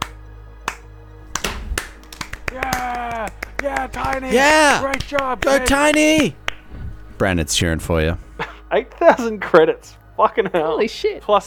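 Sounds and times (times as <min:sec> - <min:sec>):
lackluster clapping: 0:00.0 - 0:06.7
speech: 0:02.5 - 0:06.4, 0:07.2 - 0:11.4.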